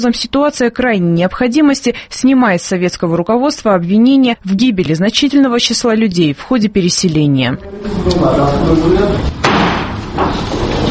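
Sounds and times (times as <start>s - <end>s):
speech: 0.0s - 9.4s
murmuring voices: 7.5s - 9.4s
wooden gavel strike: 9.4s - 10.4s.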